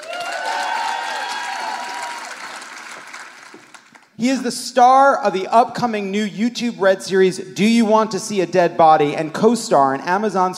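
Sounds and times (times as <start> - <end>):
drawn-out cheering voices: 0.0 - 2.7
audience applause welcoming a panelist on a news-comedy panel show: 0.0 - 4.1
speech: 4.2 - 10.5.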